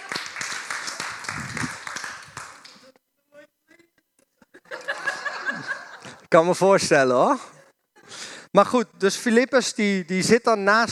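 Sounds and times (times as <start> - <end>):
group applause: 0.0 - 2.9
laughter: 4.4 - 6.2
speech: 6.3 - 7.5, 8.5 - 10.9.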